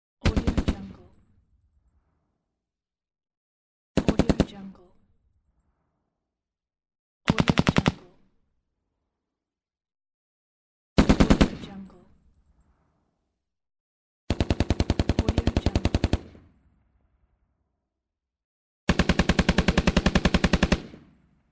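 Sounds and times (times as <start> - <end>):
machine gun firing: 0.2 - 1.0, 7.3 - 8.0, 11.0 - 11.8, 14.3 - 16.5, 18.9 - 21.2.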